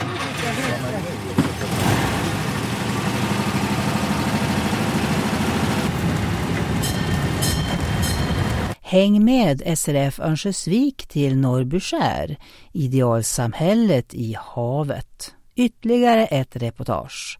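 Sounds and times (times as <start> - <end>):
small tourist train running along street: 0.0 - 8.8
speech: 8.9 - 17.3.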